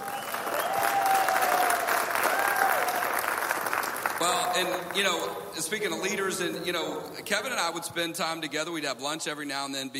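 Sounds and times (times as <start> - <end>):
round of applause from audience: 0.0 - 5.0
speech: 4.5 - 9.9.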